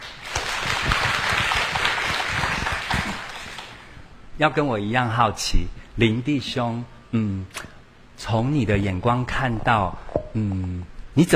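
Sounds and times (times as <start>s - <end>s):
warm applause: 0.0s - 4.0s
speech: 4.4s - 11.3s.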